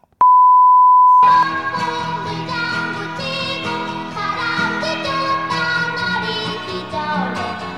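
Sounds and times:
beep covering a missing song lyric: 0:00.2 - 0:01.4
song instrumental intro: 0:01.2 - 0:07.7.

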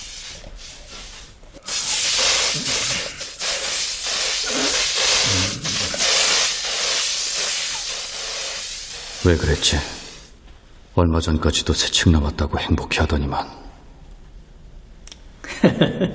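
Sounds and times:
insecticide being sprayed: 0:00.0 - 0:10.3
speech: 0:09.3 - 0:10.0, 0:11.0 - 0:13.7, 0:15.6 - 0:16.1
laughter: 0:15.5 - 0:16.1.

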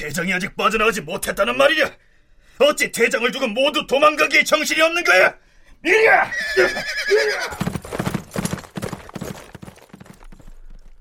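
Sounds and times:
speech: 0:00.0 - 0:08.0
horse galloping through soldiers in battle: 0:06.6 - 0:10.9.

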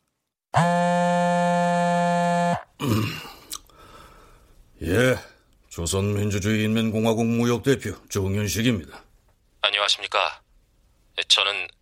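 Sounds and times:
mobile phone vibrating strongly: 0:00.6 - 0:03.0
speech: 0:04.8 - 0:05.2, 0:05.8 - 0:09.1, 0:09.8 - 0:10.4, 0:11.2 - 0:11.8.

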